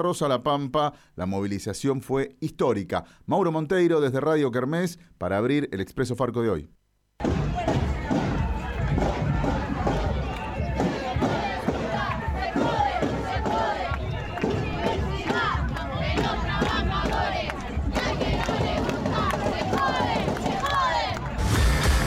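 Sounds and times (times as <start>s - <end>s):
speech: 0.0s - 7.4s
thousands of marchers chanting and shouting at a street demonstration in Santa Rosa, La Pampa: 7.2s - 22.0s.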